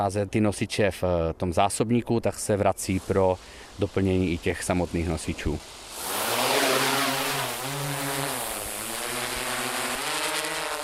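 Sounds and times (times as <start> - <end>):
speech: 0.0 - 6.2
drone flying away: 5.9 - 10.8.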